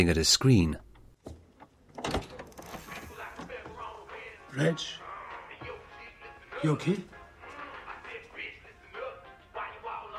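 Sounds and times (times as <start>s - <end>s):
speech: 0.0s - 0.8s, 4.6s - 5.0s, 6.6s - 7.1s
door being opened: 0.9s - 3.9s.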